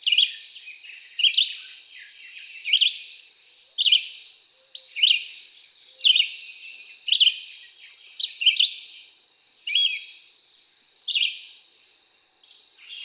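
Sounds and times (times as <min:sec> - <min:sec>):
Red-eyed Vireo: 0:00.0 - 0:13.0.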